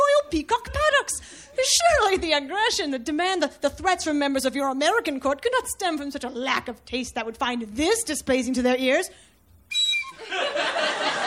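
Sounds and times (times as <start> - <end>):
speech: 0.3 - 9.3
high whistle note: 9.7 - 10.2
laughter: 10.1 - 11.2.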